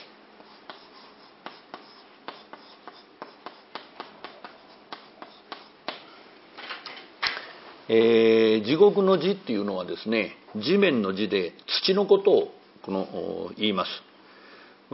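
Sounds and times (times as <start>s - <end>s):
writing text on a board: 0.4s - 6.0s
speech: 7.9s - 14.1s.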